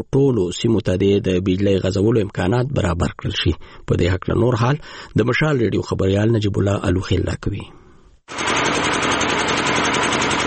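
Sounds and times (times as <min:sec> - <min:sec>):
speech: 0:00.0 - 0:08.5
old electricity generator running at Yaqubi bazaar in Sabari district: 0:08.3 - 0:10.4.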